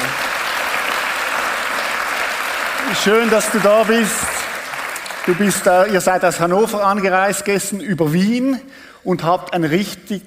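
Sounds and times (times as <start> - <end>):
audience applause: 0.0 - 6.9
speech: 3.0 - 4.3, 5.2 - 10.2.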